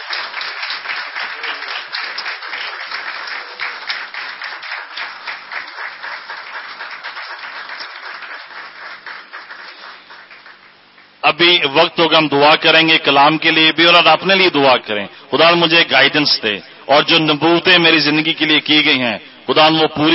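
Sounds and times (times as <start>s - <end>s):
audience clapping: 0.0s - 11.6s
speech: 11.3s - 20.1s.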